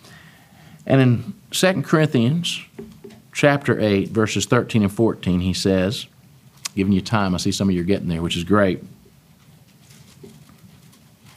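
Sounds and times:
speech: 0:00.9 - 0:02.7, 0:03.4 - 0:06.1, 0:06.8 - 0:09.0
pages of bibles being turned: 0:09.4 - 0:11.3.

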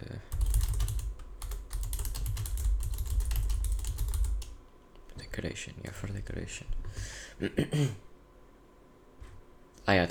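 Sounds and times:
typing on a computer keyboard: 0:00.3 - 0:04.6
speech: 0:05.4 - 0:06.8, 0:07.4 - 0:08.1, 0:09.9 - 0:10.0.

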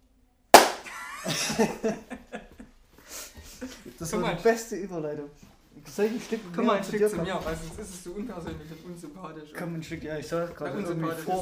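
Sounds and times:
hand clapping: 0:00.6 - 0:01.0
laughter: 0:00.8 - 0:04.0
speech: 0:01.2 - 0:02.4, 0:03.6 - 0:11.4.

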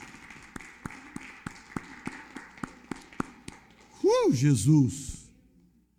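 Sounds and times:
audience applause: 0:00.0 - 0:04.0
speech: 0:04.2 - 0:05.1.

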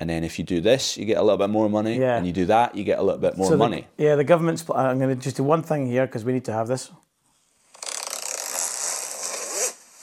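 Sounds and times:
speech: 0:00.0 - 0:07.0
zip being pulled: 0:07.7 - 0:10.0.

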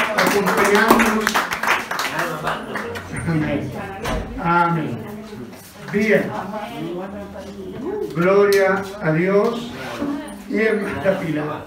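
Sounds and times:
crowd applauding: 0:00.0 - 0:03.3
speech: 0:00.4 - 0:01.3, 0:03.3 - 0:05.2, 0:05.9 - 0:11.6.

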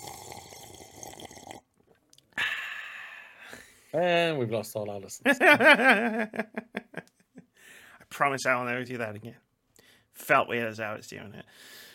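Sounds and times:
loud slurping sip of a drink: 0:00.0 - 0:01.6
speech: 0:03.9 - 0:06.7, 0:08.2 - 0:09.4, 0:10.2 - 0:11.8.

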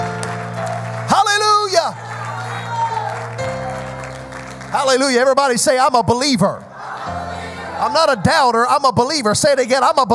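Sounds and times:
audience clapping along: 0:00.0 - 0:05.8
sustained organ or keyboard chords: 0:00.0 - 0:10.1
speech: 0:04.7 - 0:06.7, 0:07.8 - 0:10.1.

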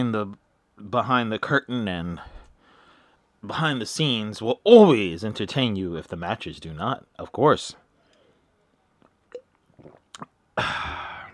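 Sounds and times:
speech: 0:00.0 - 0:02.4, 0:03.4 - 0:07.8, 0:10.6 - 0:11.0
sipping coffee: 0:09.3 - 0:10.3.

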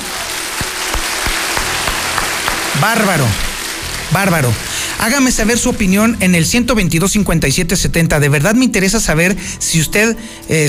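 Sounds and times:
applause: 0:00.0 - 0:06.0
speech: 0:02.8 - 0:03.5, 0:04.1 - 0:10.6.

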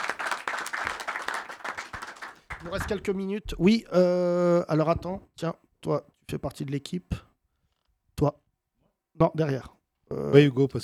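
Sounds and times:
audience applause: 0:00.0 - 0:03.1
speech: 0:02.6 - 0:07.2, 0:08.2 - 0:08.4, 0:09.2 - 0:10.8.

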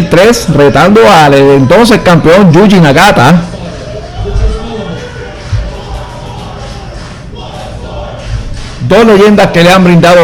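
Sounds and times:
speech: 0:00.0 - 0:03.5, 0:08.9 - 0:10.2
crowd chanting at a combat-sports event in the White Eagle Hall: 0:03.4 - 0:08.8.

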